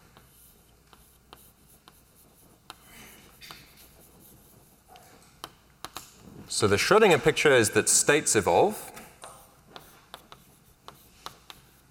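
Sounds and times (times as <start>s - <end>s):
equations being written by hand: 0.0s - 6.1s, 9.2s - 11.9s
speech: 6.6s - 8.9s.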